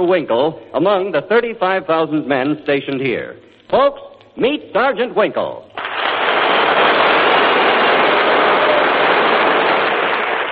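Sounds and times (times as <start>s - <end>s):
speech: 0.0s - 5.7s
large audience applauding: 5.8s - 10.5s.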